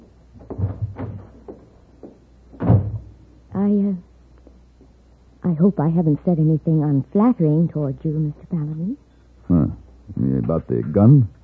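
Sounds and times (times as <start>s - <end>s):
door bumping open: 0.4s - 1.7s, 2.5s - 3.2s
speech: 3.6s - 4.1s, 5.5s - 11.4s.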